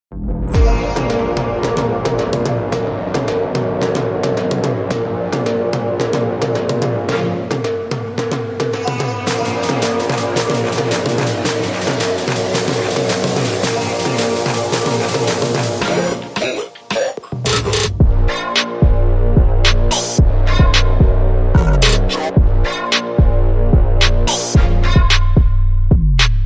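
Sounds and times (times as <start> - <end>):
instrumental music: 0.4 - 26.4.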